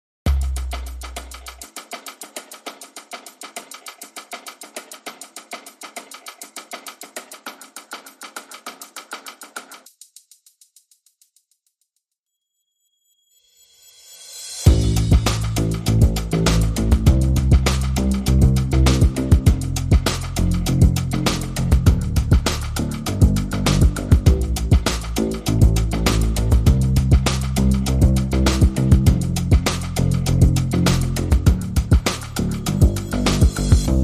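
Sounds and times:
bass: 0.3 - 1.6, 14.7 - 34.0
drums: 0.3 - 11.5, 14.0 - 34.0.

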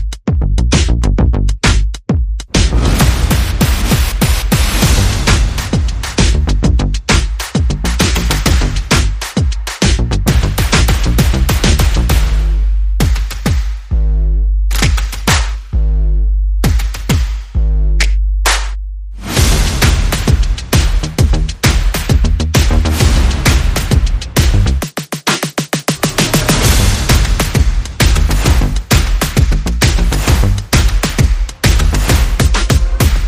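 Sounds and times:
percussion: 0.0 - 14.1, 14.7 - 33.2
bass: 0.0 - 24.9, 25.9 - 33.2
sound effects: 2.6 - 6.5, 25.9 - 29.0.

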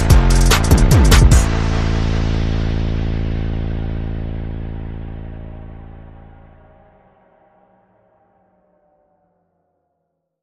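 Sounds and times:
percussion: 0.0 - 1.7
synth bass: 0.0 - 7.0.

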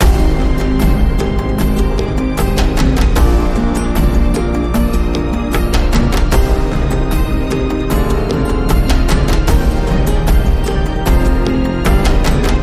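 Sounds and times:
cinematic music loop: 0.0 - 12.6.

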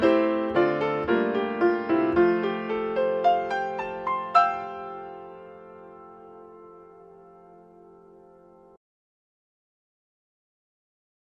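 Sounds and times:
solo piano carol: 0.0 - 8.8.

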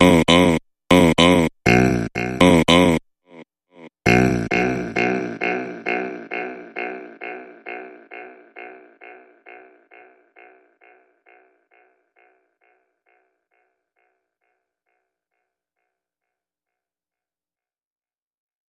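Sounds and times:
vocal oh variation: 0.0 - 11.9.

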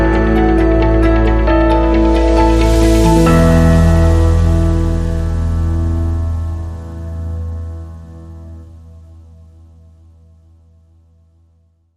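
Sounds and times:
musical sting without percussion: 0.1 - 7.8.

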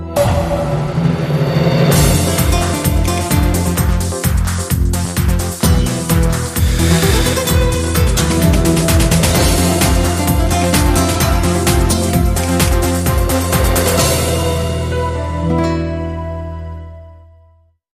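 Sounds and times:
flamenco music: 0.1 - 16.9.

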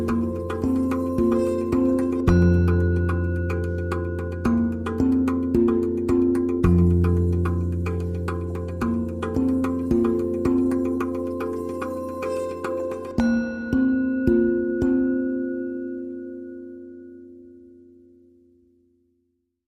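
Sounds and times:
hang drum jam without percussion: 0.0 - 15.0.

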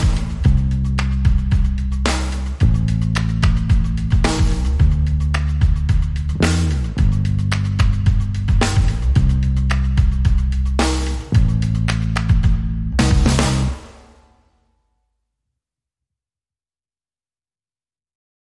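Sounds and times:
bass: 0.0 - 14.2
drums: 0.0 - 14.3.

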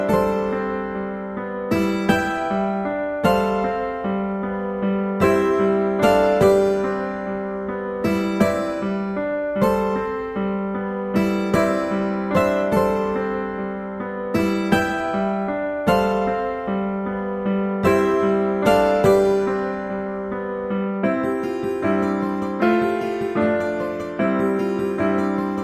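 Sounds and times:
new age romance guitar and piano music: 0.0 - 25.6.

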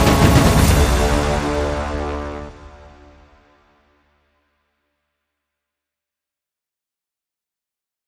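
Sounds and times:
drums: 0.0 - 3.3
brass instruments: 0.0 - 4.4.

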